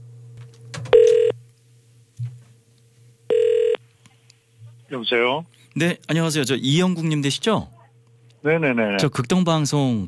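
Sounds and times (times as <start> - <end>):
telephone call ringing: 0.9 - 1.3, 3.3 - 3.8
speech: 4.9 - 7.8, 8.4 - 10.0.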